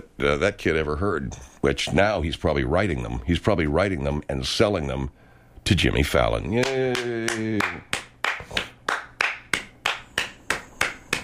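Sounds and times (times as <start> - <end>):
speech: 0.2 - 8.7
hand clapping: 6.5 - 11.2.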